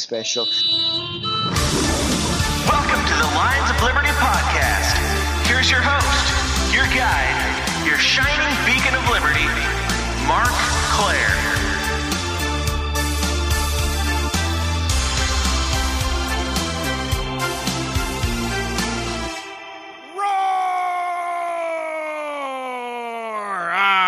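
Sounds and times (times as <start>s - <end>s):
speech: 0.0s - 1.3s, 3.8s - 4.6s, 5.6s - 11.6s
music burst: 0.5s - 20.0s
person roaring in frustration: 20.2s - 24.0s.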